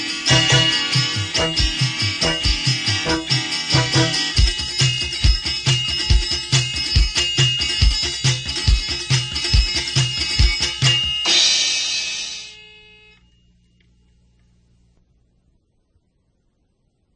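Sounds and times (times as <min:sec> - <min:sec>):
calypso parody backing track: 0:00.0 - 0:11.4.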